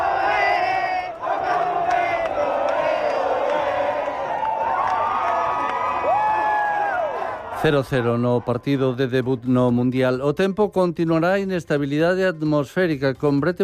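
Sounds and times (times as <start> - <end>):
crowd celebrating a football draw: 0.0 - 9.5
whoops and chanted yells: 3.2 - 7.6
speech: 7.6 - 13.6.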